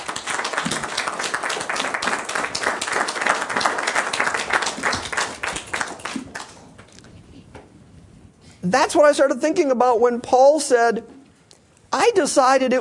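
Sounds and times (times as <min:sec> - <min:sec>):
audience applause: 0:00.0 - 0:06.6
speech: 0:08.7 - 0:11.1, 0:12.0 - 0:12.7.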